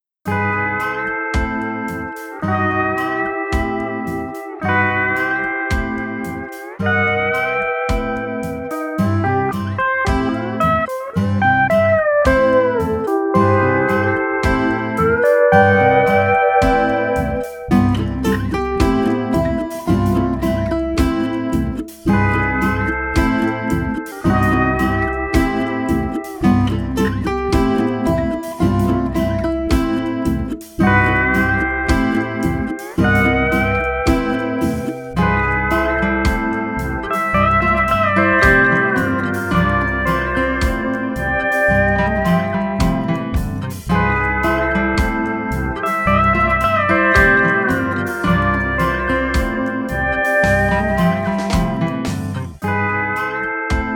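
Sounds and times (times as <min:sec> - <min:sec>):
island shuffle music: 0:00.3 - 0:53.9.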